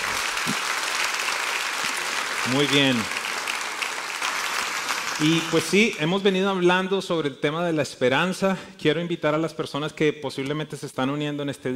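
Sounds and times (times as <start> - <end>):
audience applauding loudly: 0.0 - 6.4
speech: 2.5 - 3.2, 5.2 - 11.7.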